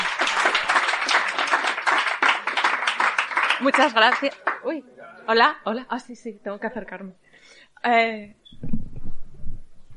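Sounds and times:
crowd applauding steadily: 0:00.0 - 0:04.7
speech: 0:03.6 - 0:08.8.

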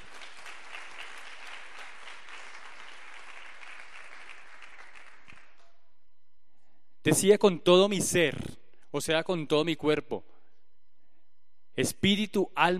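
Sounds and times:
audience applause: 0:00.0 - 0:05.6
speech: 0:07.0 - 0:10.3, 0:11.8 - 0:12.7.

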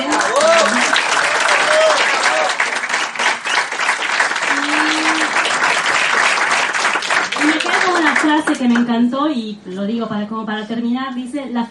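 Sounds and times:
faint voices and whoops: 0:00.0 - 0:02.6, 0:04.5 - 0:05.5
loud crowd applause: 0:00.0 - 0:08.8
speech: 0:08.6 - 0:11.6.

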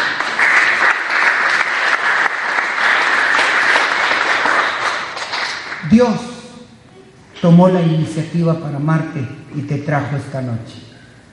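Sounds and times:
audience applauding: 0:00.0 - 0:06.0
speech: 0:05.9 - 0:06.3, 0:07.4 - 0:10.9.

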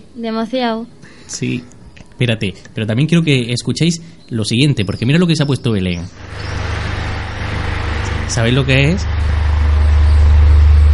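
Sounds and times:
speech: 0:00.2 - 0:07.0, 0:08.3 - 0:09.3
electric fan running: 0:06.1 - 0:10.9.

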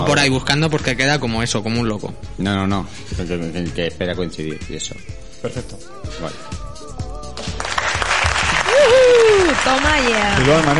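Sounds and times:
speech: 0:00.1 - 0:06.6, 0:09.3 - 0:10.7
applause: 0:07.4 - 0:10.7.

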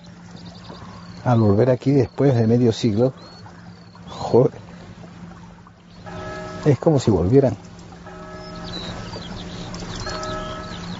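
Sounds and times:
birds chirping and twittering: 0:00.0 - 0:10.9
speech: 0:01.2 - 0:03.4, 0:04.3 - 0:04.6, 0:06.6 - 0:07.6
bell ringing: 0:06.1 - 0:07.0, 0:08.0 - 0:10.9.

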